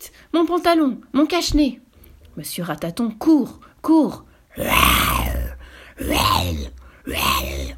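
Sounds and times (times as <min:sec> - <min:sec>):
speech: 0:00.0 - 0:01.8, 0:02.4 - 0:05.2, 0:06.0 - 0:07.7
person imitating a lion's roar: 0:04.5 - 0:07.7.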